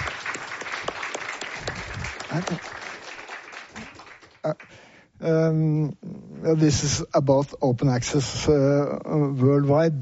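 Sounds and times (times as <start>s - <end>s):
audience applause for a panel: 0.0s - 4.8s
speech: 2.3s - 2.8s, 4.4s - 10.0s.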